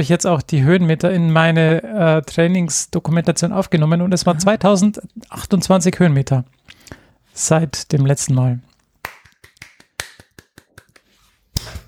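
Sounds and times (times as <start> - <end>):
speech: 0.0 - 9.2
slow clap: 9.0 - 11.8.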